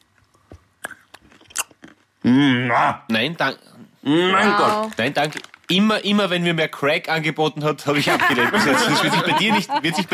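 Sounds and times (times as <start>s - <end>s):
chewing a crunchy cinnamon almond: 0.0s - 2.2s
speech: 2.2s - 10.1s
laughter: 7.9s - 10.1s.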